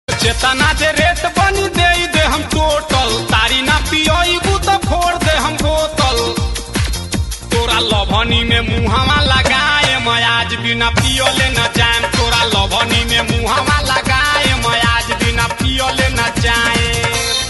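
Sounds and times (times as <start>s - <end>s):
Bhojpuri ringtone: 0.1s - 17.4s.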